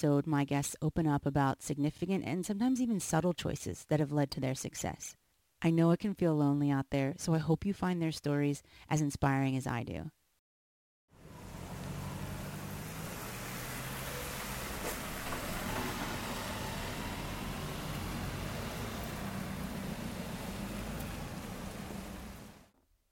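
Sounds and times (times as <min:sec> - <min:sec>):
speech: 0:00.0 - 0:10.2
rainy London street ambience: 0:11.2 - 0:22.7.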